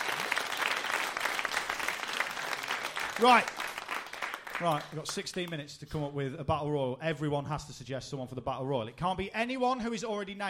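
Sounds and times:
round of applause: 0:00.0 - 0:05.6
speech: 0:03.2 - 0:03.6, 0:04.6 - 0:10.4.

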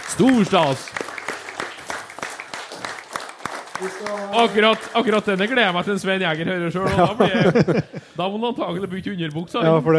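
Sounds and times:
applause: 0:00.0 - 0:06.5
speech: 0:00.1 - 0:01.0, 0:03.8 - 0:09.9
laughter: 0:06.2 - 0:08.9.

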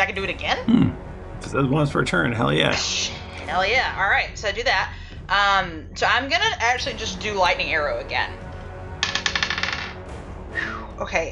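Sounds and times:
speech: 0:00.1 - 0:08.4, 0:10.6 - 0:11.3
dice rolling across a hard table: 0:09.0 - 0:10.0.

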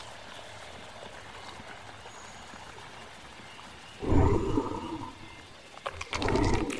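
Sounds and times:
dinosaur growling: 0:04.0 - 0:05.4, 0:06.0 - 0:06.7
loud deep dinosaur roar: 0:04.0 - 0:05.4, 0:06.1 - 0:06.7
low steady rumble: 0:04.0 - 0:05.4, 0:06.0 - 0:06.7.

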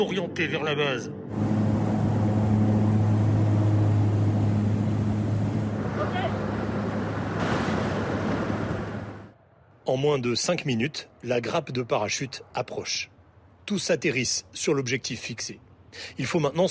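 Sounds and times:
speech: 0:00.0 - 0:01.4, 0:09.9 - 0:13.1, 0:13.7 - 0:16.6
small twin-engine plane in flight: 0:01.1 - 0:09.3.

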